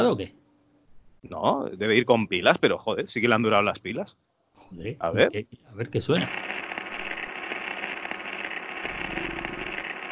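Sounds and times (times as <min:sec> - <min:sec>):
speech: 0:00.0 - 0:00.4, 0:01.2 - 0:06.5
radio static: 0:06.1 - 0:10.1.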